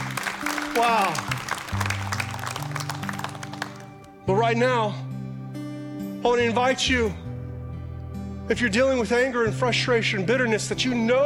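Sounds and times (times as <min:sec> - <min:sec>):
church congregation clapping in praise: 0:00.0 - 0:04.2
speech: 0:00.8 - 0:01.4, 0:04.3 - 0:05.1, 0:06.2 - 0:07.2, 0:08.5 - 0:11.2.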